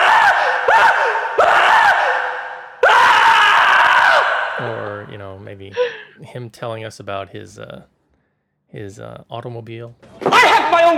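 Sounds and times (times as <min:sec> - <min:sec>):
man screaming: 0:00.0 - 0:04.9
speech: 0:05.0 - 0:08.0, 0:08.7 - 0:10.9.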